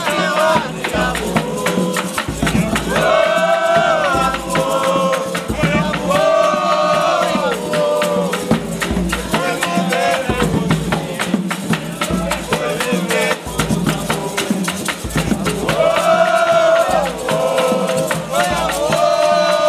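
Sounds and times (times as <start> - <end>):
batuque de umbigada drumming in Tiete: 0.0 - 19.6.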